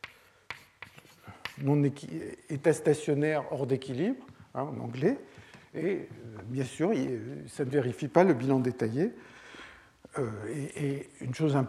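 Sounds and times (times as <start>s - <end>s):
handwriting scratches in a physics lecture: 0.0s - 1.9s
speech: 1.6s - 9.4s, 10.1s - 11.6s.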